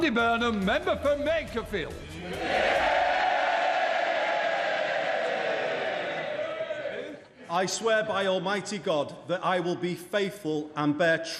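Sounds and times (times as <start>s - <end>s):
speech: 0.0s - 2.9s, 7.5s - 11.3s
MPs cheering in parliament chamber: 2.2s - 7.4s.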